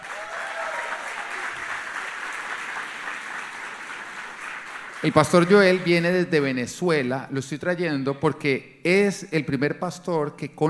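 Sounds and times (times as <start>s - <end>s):
crowd applause: 0.0s - 6.0s
speech: 5.0s - 10.6s.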